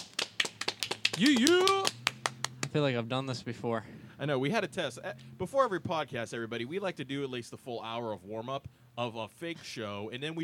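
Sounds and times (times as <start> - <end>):
round of applause: 0.0 - 2.8
speech: 1.2 - 2.0, 2.7 - 10.4.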